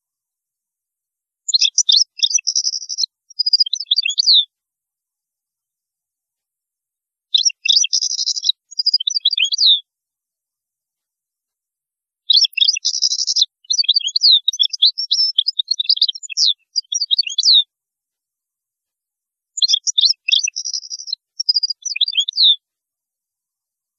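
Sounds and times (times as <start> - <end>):
European goldfinch song: 1.4 - 4.5, 7.3 - 9.9, 12.2 - 17.7, 19.6 - 22.6.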